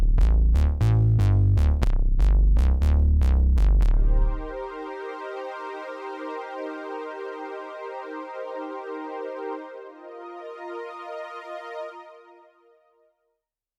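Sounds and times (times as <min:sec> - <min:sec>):
TR909 drum machine house beat: 0:00.0 - 0:04.4
sine sub bass: 0:00.0 - 0:04.8
strings: 0:04.0 - 0:12.7.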